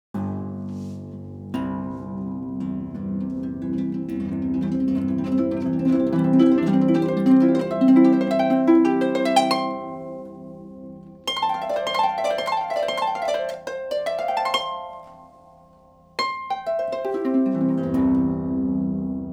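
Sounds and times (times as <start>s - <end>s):
harp: 0.2s - 19.3s.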